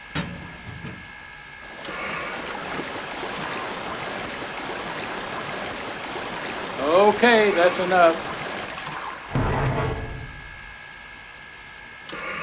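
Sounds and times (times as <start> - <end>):
mechanical clunk: 0.0 - 1.1, 9.3 - 10.8
water filling a steam locomotive's tank: 1.6 - 11.1
speech: 7.1 - 8.3.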